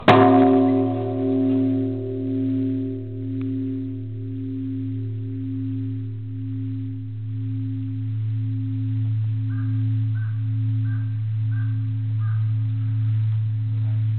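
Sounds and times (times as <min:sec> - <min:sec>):
Engyoji temple bell ringing: 0:00.0 - 0:14.0.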